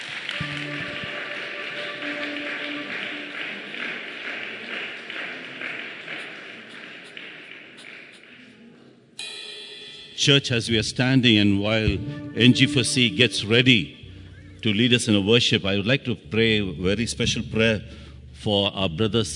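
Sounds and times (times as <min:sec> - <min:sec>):
audience applause: 0:00.0 - 0:08.6
low tonal notes: 0:00.3 - 0:04.9, 0:11.5 - 0:19.3
speech: 0:10.2 - 0:14.0, 0:14.6 - 0:19.3.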